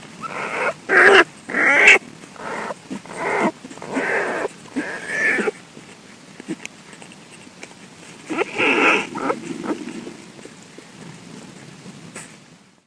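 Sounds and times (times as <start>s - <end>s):
cubs' mother snoring and grunting: 0.2s - 5.6s, 8.2s - 10.6s.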